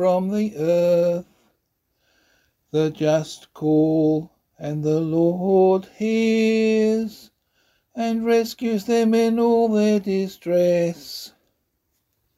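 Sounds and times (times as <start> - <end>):
psalm in C sung by voice: 0.0 - 1.5, 2.7 - 7.4, 8.0 - 11.4.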